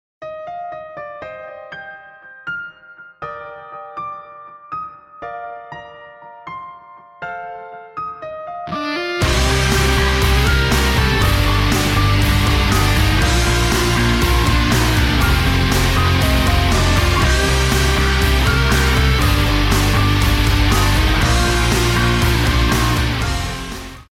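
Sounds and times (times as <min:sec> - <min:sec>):
guitar: 0:08.6 - 0:24.1.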